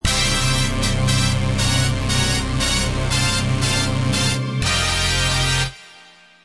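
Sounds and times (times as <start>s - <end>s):
battle clear game music: 0.0s - 6.1s.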